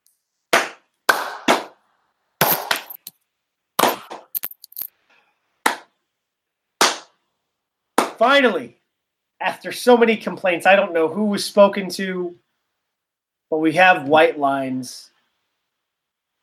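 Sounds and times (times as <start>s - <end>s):
slow clap: 0.5s - 1.8s, 5.6s - 5.9s, 6.8s - 7.2s, 8.0s - 8.2s
speech: 8.2s - 8.8s, 9.4s - 12.4s, 13.5s - 15.1s.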